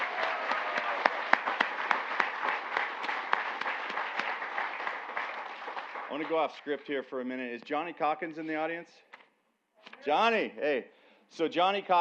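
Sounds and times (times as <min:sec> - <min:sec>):
audience applause: 0:00.0 - 0:06.6
speech: 0:06.2 - 0:09.1, 0:10.0 - 0:11.9.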